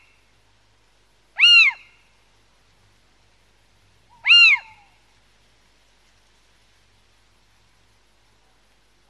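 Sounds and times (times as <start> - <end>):
little owl mewing call rising and falling: 1.4 - 2.0, 4.1 - 5.0.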